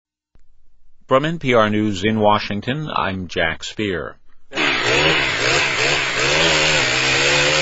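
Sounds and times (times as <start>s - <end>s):
speech: 1.1s - 5.3s
chainsaws cutting through fallen storm tree limbs: 4.5s - 7.6s.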